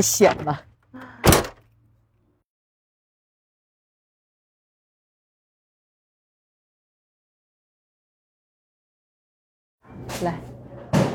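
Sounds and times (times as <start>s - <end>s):
speech: 0.0s - 0.7s, 9.9s - 10.5s
car door opening: 1.2s - 1.6s.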